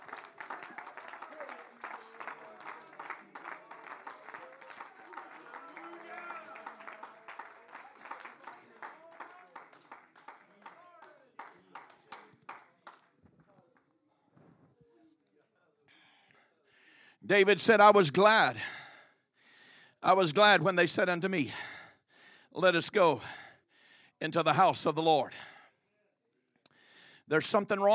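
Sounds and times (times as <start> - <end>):
audience clapping hands in praise: 0.0 - 13.8
speech: 17.3 - 18.8, 20.0 - 21.7, 22.6 - 23.4, 24.2 - 25.5, 27.3 - 27.9.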